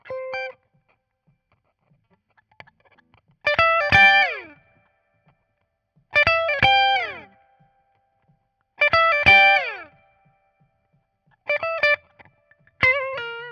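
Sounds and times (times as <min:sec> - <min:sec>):
guitar solo: 0:00.0 - 0:00.6, 0:02.4 - 0:05.3, 0:06.1 - 0:10.8, 0:11.4 - 0:13.5.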